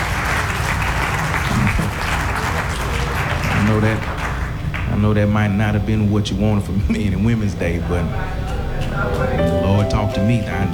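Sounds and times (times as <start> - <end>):
audience clapping hands: 0.0 - 5.1, 8.5 - 10.7
speech: 3.7 - 4.2, 5.0 - 10.7.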